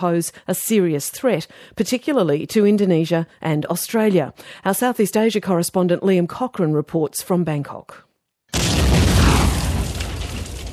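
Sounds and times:
speech: 0.0 - 8.8
motorcycle bomb explosion: 8.5 - 10.7.

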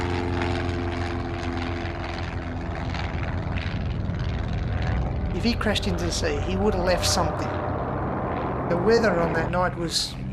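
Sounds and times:
light propeller aircraft engine droning at high power, taking off: 0.0 - 10.3
broad wash of rushing noise: 5.1 - 9.8
speech: 5.4 - 7.7, 8.7 - 10.2.

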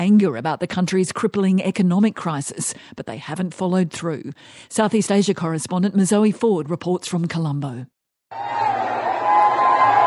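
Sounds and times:
speech: 0.0 - 8.7
anti-government protesters cheering breaking into the Sri Lankan Prime Minister's compound in Colombo: 8.3 - 10.0.

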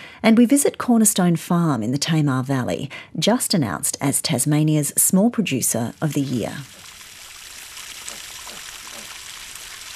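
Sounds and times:
speech: 0.2 - 6.8
water filling a mud pit for piglets and sows at Cornerstone Farm, Tamar Valley, Tasmania: 5.8 - 9.9.

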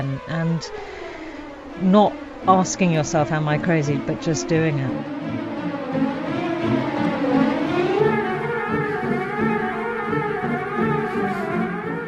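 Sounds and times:
speech: 0.0 - 1.0, 1.8 - 6.1
fast classical piece: 1.8 - 12.0.

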